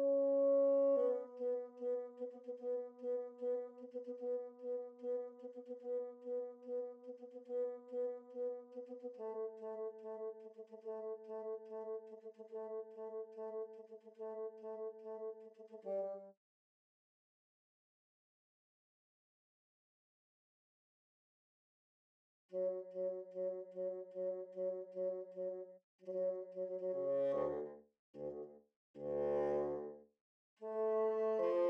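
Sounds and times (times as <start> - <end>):
bassoon: 0.0 - 16.3, 22.6 - 30.0, 30.6 - 31.6.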